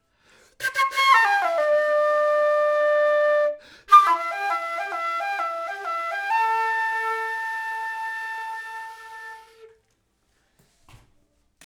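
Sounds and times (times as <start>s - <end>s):
flute: 0.6s - 9.8s.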